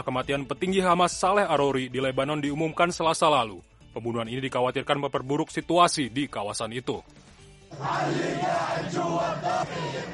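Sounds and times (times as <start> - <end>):
speech: 0.0 - 10.1
crowd chanting slogans in Ramallah: 7.7 - 10.1.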